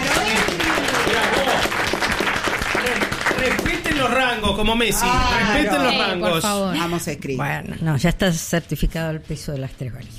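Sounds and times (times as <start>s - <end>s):
audience applause: 0.0s - 5.6s
speech: 4.2s - 10.1s.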